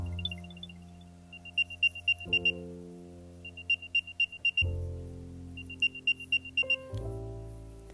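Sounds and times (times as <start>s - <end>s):
AirTag locator alert beeping: 0.0s - 2.6s, 3.4s - 4.7s, 5.6s - 6.9s.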